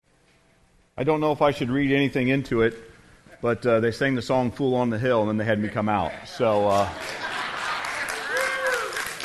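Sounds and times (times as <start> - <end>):
speech: 1.0 - 7.3
laughter: 5.6 - 8.9
teenagers applauding: 6.6 - 9.2
person whooping: 8.2 - 9.2.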